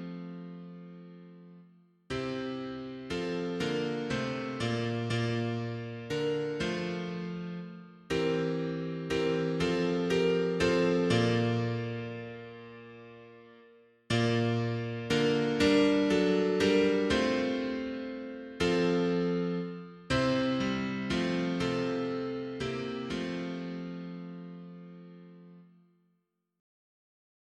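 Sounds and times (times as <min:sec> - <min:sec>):
mono piano playing hymns: 0:02.4 - 0:13.2, 0:14.1 - 0:24.5.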